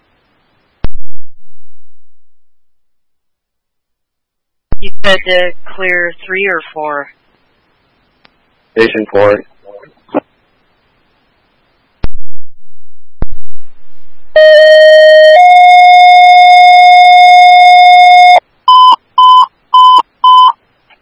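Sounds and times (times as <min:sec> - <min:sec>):
speech: 0:05.0 - 0:07.2, 0:08.8 - 0:09.5
fire dispatch paging tones: 0:14.4 - 0:20.6.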